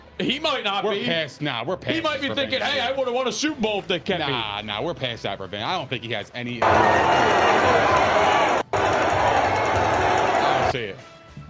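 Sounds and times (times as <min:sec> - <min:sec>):
speech: 0:00.2 - 0:08.6
stadium crowd roar: 0:06.6 - 0:10.7.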